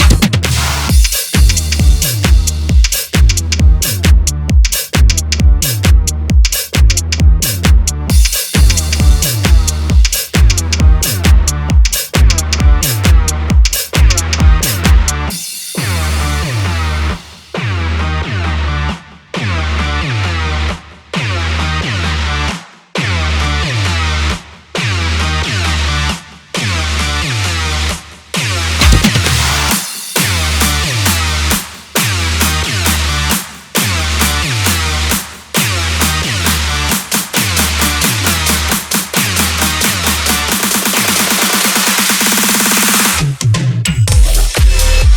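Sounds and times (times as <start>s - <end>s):
EDM house remix workout music: 0.0s - 45.1s.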